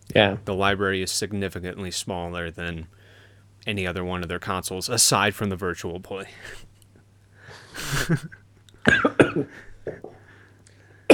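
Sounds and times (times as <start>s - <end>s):
speech: 0.1s - 6.7s, 7.8s - 10.0s
person coughing after choking on beer: 7.8s - 10.2s.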